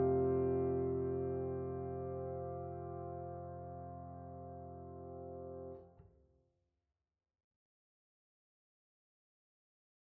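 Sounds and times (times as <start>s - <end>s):
solo piano: 0.0s - 6.0s.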